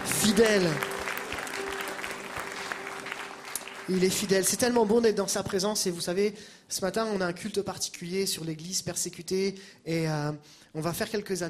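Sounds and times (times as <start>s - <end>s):
audience applauding: 0.0s - 5.1s
speech: 0.2s - 0.9s, 3.9s - 11.4s.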